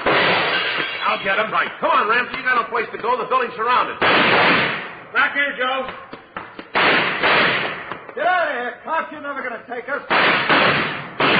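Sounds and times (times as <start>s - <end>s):
gunshots in a radio drama shootout: 0.0s - 0.8s, 4.0s - 5.1s, 6.7s - 7.9s, 10.1s - 11.3s
speech: 1.2s - 6.1s, 8.2s - 10.9s
man shouting: 8.2s - 9.3s.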